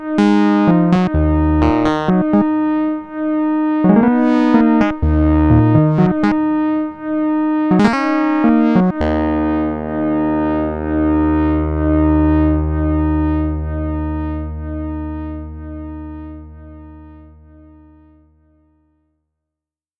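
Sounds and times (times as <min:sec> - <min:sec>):
short MemoryMoog synthesizer solo: 0:00.2 - 0:03.0, 0:03.6 - 0:06.8, 0:07.5 - 0:16.7.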